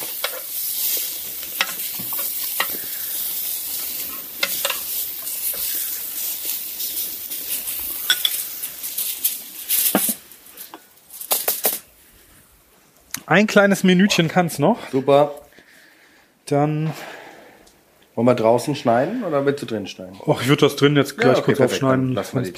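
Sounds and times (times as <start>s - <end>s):
utensils clicking and clattering: 0.0s - 10.2s
meat sizzling as it fries in a pan: 0.0s - 12.0s
speech: 13.3s - 15.4s, 16.5s - 17.1s, 18.2s - 22.5s.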